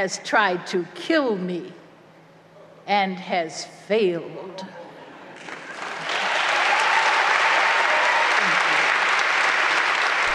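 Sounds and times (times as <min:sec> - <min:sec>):
speech: 0:00.0 - 0:01.8, 0:02.9 - 0:04.8
audience applause after poetry reading: 0:05.4 - 0:10.3.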